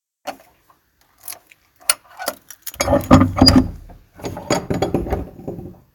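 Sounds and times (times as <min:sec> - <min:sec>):
garden shed door opening: 0:02.7 - 0:05.6.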